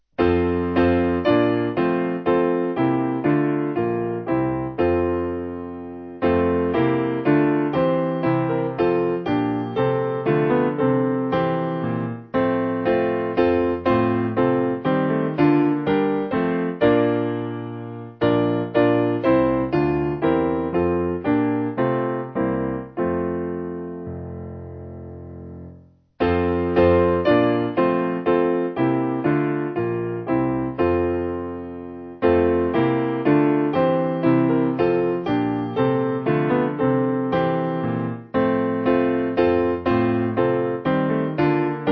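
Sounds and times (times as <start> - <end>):
piano backing music: 0.2 - 41.9.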